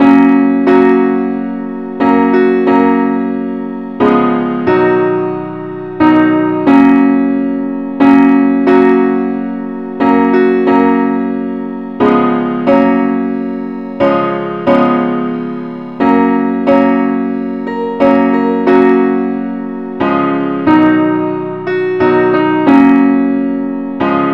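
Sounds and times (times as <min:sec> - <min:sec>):
simple accompaniment in G flat: 0:00.0 - 0:24.3.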